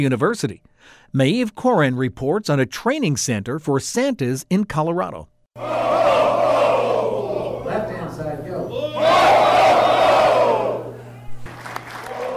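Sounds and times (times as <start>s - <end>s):
speech: 0.0s - 6.2s
2012 graduating class of Santa University cheering and shouting in Arvada, Colorado: 5.6s - 7.8s, 8.7s - 11.3s, 12.0s - 12.3s.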